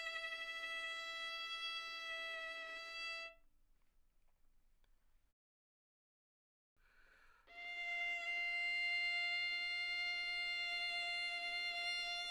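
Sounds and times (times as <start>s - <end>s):
violin bowed mezzo forte on the A string: 0.0s - 3.5s, 7.4s - 12.2s.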